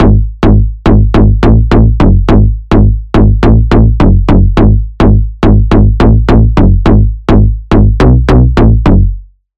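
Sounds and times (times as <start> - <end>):
bass: 0.0 - 9.5.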